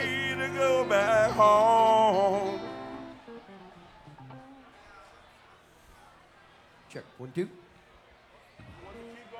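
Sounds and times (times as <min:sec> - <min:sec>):
instruments tuning: 0:00.0 - 0:04.6.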